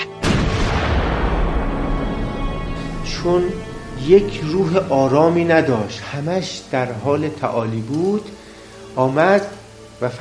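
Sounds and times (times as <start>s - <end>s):
artillery cannon fire boom: 0.2s - 5.5s
speech: 3.2s - 8.4s, 9.0s - 10.1s.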